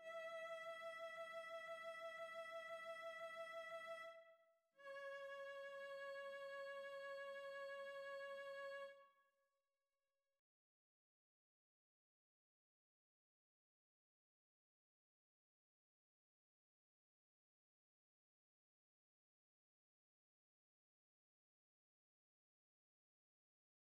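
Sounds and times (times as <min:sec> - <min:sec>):
cello: 0:00.0 - 0:04.2, 0:04.8 - 0:09.0.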